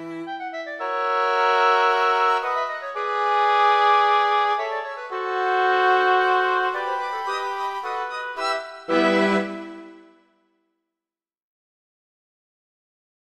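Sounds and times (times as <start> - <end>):
orchestra playing: 0.0 - 10.2.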